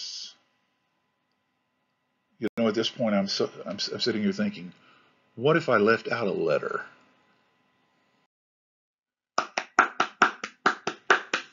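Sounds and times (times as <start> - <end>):
speech: 2.4 - 7.0
one person clapping hands: 9.4 - 11.5.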